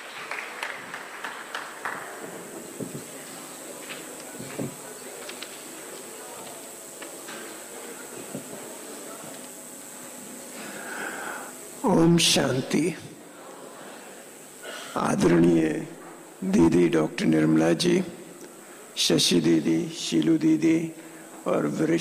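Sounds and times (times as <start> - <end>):
audience applause welcoming a speaker at a Diwali gathering: 0.0 - 3.2
speech: 12.0 - 13.1, 15.0 - 18.2, 19.0 - 21.9.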